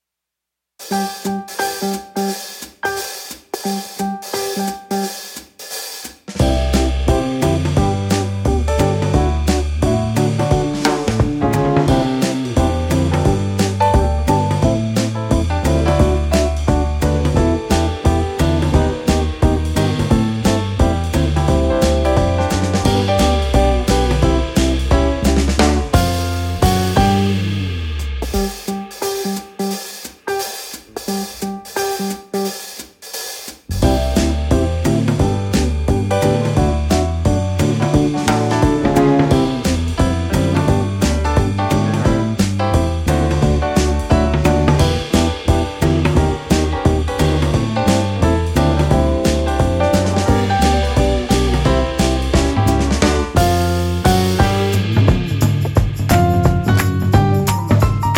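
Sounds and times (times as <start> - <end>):
instrumental music: 0.8 - 58.1.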